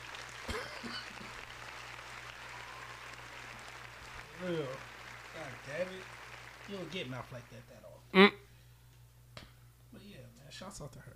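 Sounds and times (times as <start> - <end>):
round of applause: 0.0 - 7.8
speech: 4.4 - 4.9, 5.6 - 8.4, 10.6 - 11.1.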